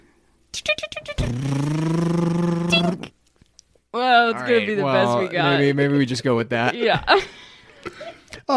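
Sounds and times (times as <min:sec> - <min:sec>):
voice imitating a mini riding lawnmower engine: 0:00.5 - 0:03.1
speech: 0:04.5 - 0:08.5.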